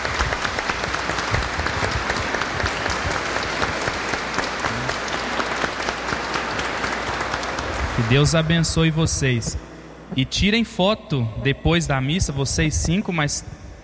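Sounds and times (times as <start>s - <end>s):
round of applause: 0.0s - 8.8s
speech: 8.0s - 13.6s.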